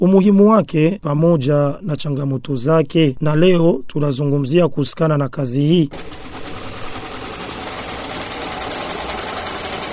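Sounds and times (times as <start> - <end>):
speech: 0.0 - 6.4
sewing machine running in a tailor's workshop: 5.9 - 9.9.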